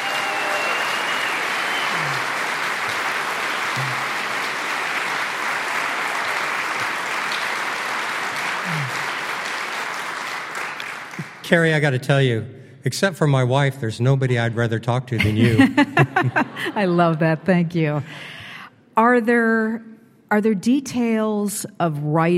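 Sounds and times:
audience applause welcoming an author to the stage: 0:00.0 - 0:11.9
laughter: 0:01.9 - 0:02.4, 0:03.8 - 0:04.3, 0:14.1 - 0:18.1
speech: 0:11.5 - 0:18.4, 0:19.0 - 0:22.3.

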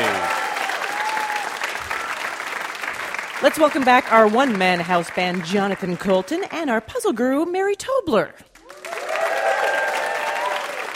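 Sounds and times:
audience applauding a VIP guest at a live puzzle show: 0:00.0 - 0:06.5, 0:08.6 - 0:10.9
speech: 0:03.4 - 0:08.5.

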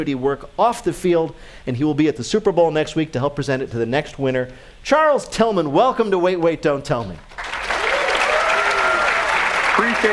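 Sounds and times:
speech: 0:00.0 - 0:07.5, 0:09.8 - 0:10.1
studio audience applause: 0:07.3 - 0:10.1.

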